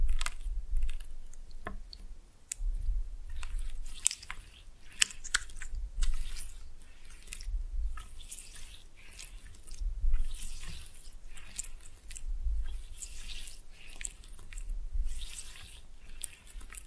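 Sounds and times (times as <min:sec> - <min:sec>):
low thumping rumble: 0:00.0 - 0:00.9, 0:02.6 - 0:03.3, 0:07.5 - 0:08.0, 0:09.8 - 0:10.2, 0:12.2 - 0:12.7
slime pressed and mixed squishing: 0:00.0 - 0:16.8.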